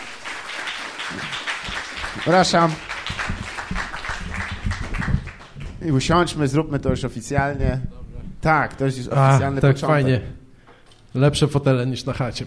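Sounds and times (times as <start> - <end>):
applause: 0.0 - 5.8
speech: 2.2 - 2.9, 5.8 - 10.4, 11.1 - 12.4.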